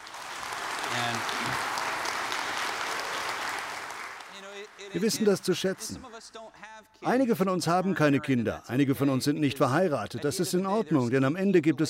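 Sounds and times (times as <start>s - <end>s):
audience applause: 0.0s - 6.2s
speech: 4.9s - 11.8s.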